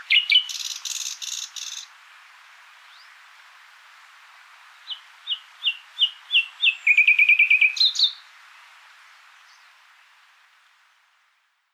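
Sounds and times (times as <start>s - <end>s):
common nightingale song: 0.0s - 2.0s, 2.8s - 3.3s, 4.0s - 8.3s.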